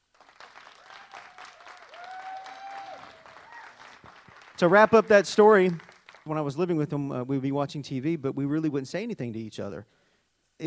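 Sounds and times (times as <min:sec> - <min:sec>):
audience applause: 0:00.0 - 0:06.3
speech: 0:04.6 - 0:10.0.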